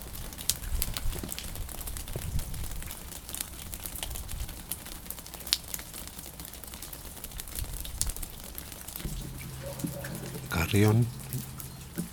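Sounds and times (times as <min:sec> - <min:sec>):
light rain pattering: 0:00.0 - 0:12.1
church bell ringing: 0:09.1 - 0:12.1
speech: 0:10.7 - 0:11.2.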